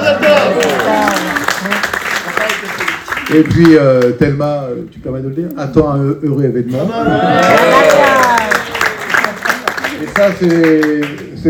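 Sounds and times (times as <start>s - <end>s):
audience applause: 0.0s - 4.1s, 7.2s - 11.4s
speech: 3.3s - 8.4s, 10.2s - 11.4s.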